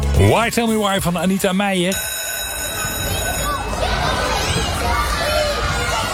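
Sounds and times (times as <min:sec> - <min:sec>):
speech: 0:00.2 - 0:02.1
children shouting and chattering at De Oversteek primary school in Nijmegen: 0:02.6 - 0:06.1.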